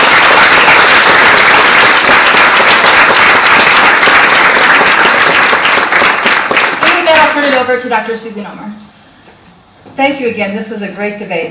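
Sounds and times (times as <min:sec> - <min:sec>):
audience applause: 0:00.0 - 0:07.5
speech: 0:10.0 - 0:11.4.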